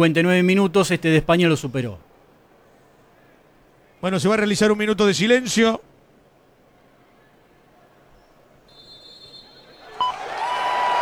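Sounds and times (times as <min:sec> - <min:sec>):
speech: 0:00.0 - 0:02.1, 0:04.0 - 0:05.9
stadium crowd applause: 0:09.6 - 0:10.9.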